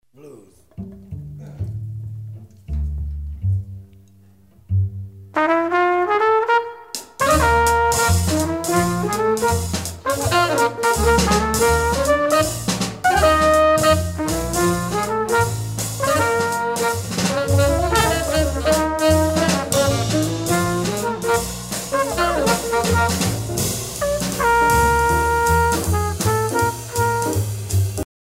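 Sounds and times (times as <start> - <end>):
blues music: 0.7 - 28.1.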